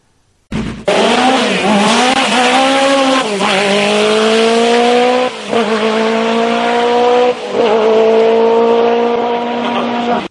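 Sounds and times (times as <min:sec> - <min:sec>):
Lancia Delta S4 rally car engine revving: 0:00.5 - 0:10.2.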